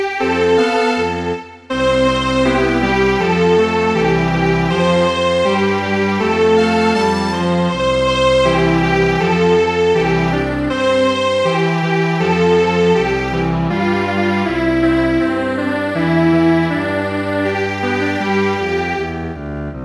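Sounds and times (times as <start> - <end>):
string quartet playing: 0.2 - 19.7.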